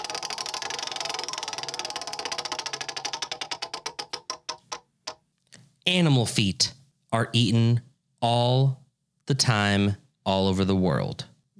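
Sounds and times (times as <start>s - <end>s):
spinning prize wheel clicking: 0.0s - 5.2s
speech: 5.9s - 11.3s.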